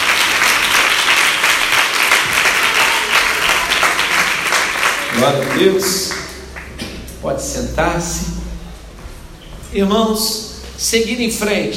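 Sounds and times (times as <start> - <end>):
audience applause: 0.0 - 6.9
speech: 5.2 - 6.1, 7.2 - 8.4, 9.7 - 11.7.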